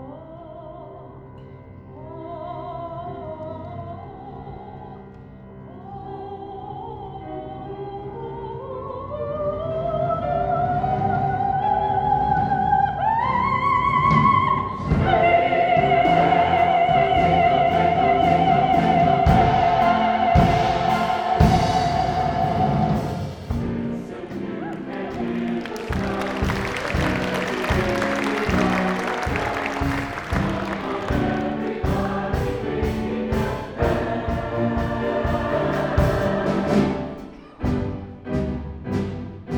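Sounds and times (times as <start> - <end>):
musical variations on a tune: 9.1 - 39.5.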